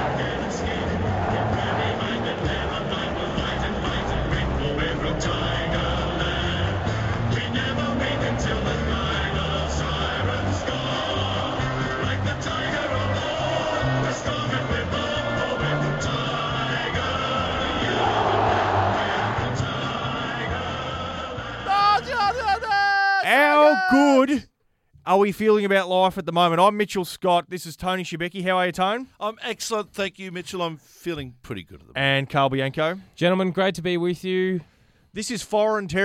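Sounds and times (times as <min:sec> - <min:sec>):
Richmond Tigers fans cheering at a preliminary final: 0:00.0 - 0:24.3
speech: 0:25.1 - 0:36.0.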